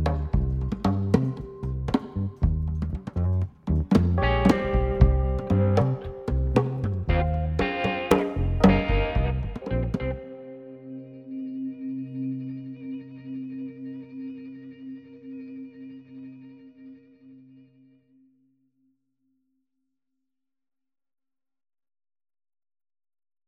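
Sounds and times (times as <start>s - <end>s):
fluffy atmospheric music: 0.0s - 18.0s.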